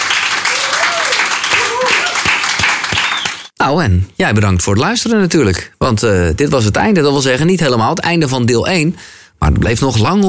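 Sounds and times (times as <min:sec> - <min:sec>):
audience applause: 0:00.0 - 0:03.5
speech: 0:03.6 - 0:10.2.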